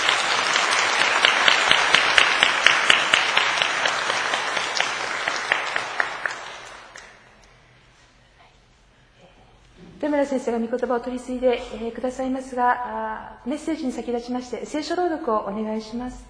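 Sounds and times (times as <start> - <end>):
welcoming audience applause: 0.0 - 7.2
speech: 10.2 - 16.2.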